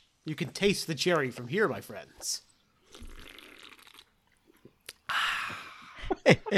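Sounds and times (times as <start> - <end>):
speech: 0.2 - 3.2, 6.3 - 6.5
gulping: 2.8 - 5.1
person sipping soda: 2.8 - 5.8.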